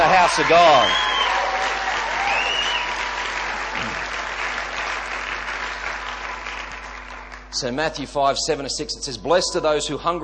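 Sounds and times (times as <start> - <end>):
audience applause: 0.0 - 7.6
speech: 0.3 - 1.1, 7.6 - 10.2.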